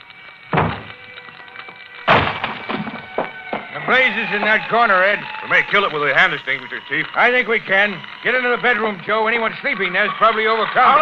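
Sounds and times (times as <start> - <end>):
firemen's axes chopping through a locked wooden door: 0.5 - 0.9, 2.1 - 3.0
speech: 3.9 - 11.0.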